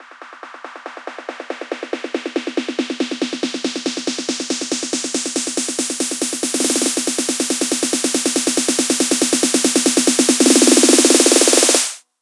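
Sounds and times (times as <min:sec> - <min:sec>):
snare drum pattern at 140 BPM: 0:01.0 - 0:12.0.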